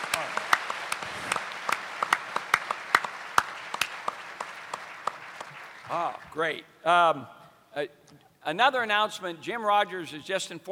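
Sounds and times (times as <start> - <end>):
audience applause: 0.0 - 6.3
speech: 5.9 - 10.6.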